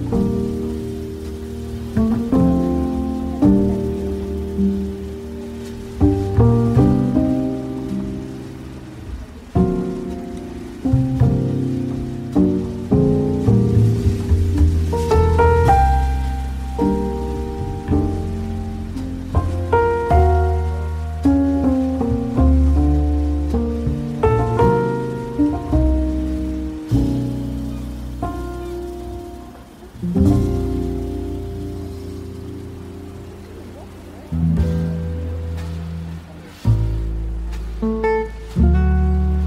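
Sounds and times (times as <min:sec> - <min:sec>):
ocean waves: 0:00.0 - 0:39.4
soft coffee shop piano music: 0:00.0 - 0:39.4.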